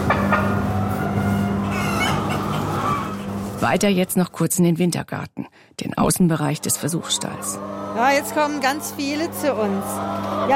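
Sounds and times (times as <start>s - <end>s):
chickens clucking in a poultry barn: 0.0s - 4.1s, 6.3s - 10.5s
steady low barn hum: 0.0s - 4.4s, 6.3s - 10.5s
speech: 3.6s - 10.5s.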